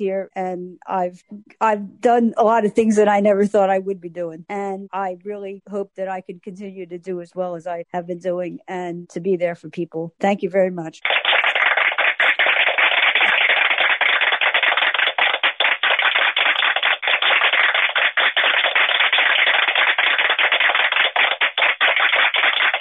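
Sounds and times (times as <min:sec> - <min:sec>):
speech: 0:00.0 - 0:11.4
applause: 0:11.0 - 0:22.7.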